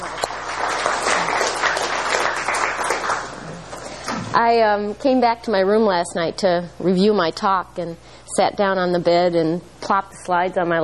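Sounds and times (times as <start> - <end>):
crowd applauding: 0.0 - 4.2
speech: 4.4 - 10.8.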